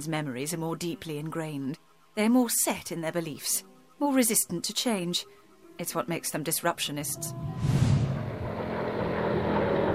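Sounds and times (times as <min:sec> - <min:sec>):
speech: 0:00.0 - 0:07.8
air whooshing: 0:07.3 - 0:08.7
automated vehicle motor humming: 0:07.3 - 0:09.9.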